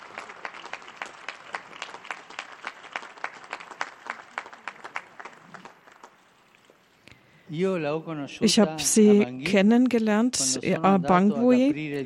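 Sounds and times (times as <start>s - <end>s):
audience applause: 0.0s - 6.3s
speech: 7.5s - 12.0s.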